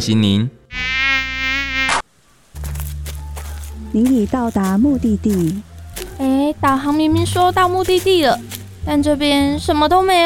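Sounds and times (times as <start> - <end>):
speech: 0.0 - 0.8, 3.9 - 10.2
flies buzzing: 0.7 - 2.0.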